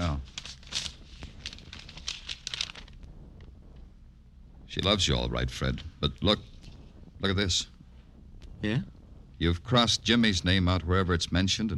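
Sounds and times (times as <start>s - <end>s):
letter paper rustling as it is drawn out of an envelope: 0.0s - 3.1s
speech: 4.8s - 6.5s, 7.2s - 7.8s, 8.6s - 11.7s.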